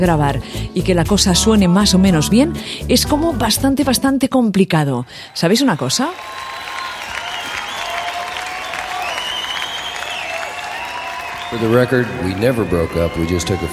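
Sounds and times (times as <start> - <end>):
speech: 0.0 - 6.5, 11.5 - 13.7
crowd applause: 5.2 - 13.7.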